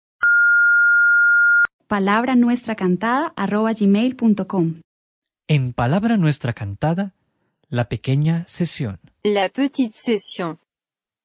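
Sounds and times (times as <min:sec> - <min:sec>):
electronic beep tone: 0:00.2 - 0:01.7
speech: 0:01.9 - 0:04.9, 0:05.5 - 0:10.6.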